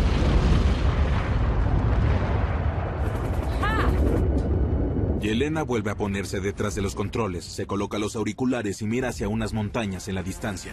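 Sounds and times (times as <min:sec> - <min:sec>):
grenade explosion hitting a tower: 0:00.0 - 0:05.6
speech: 0:05.3 - 0:10.7.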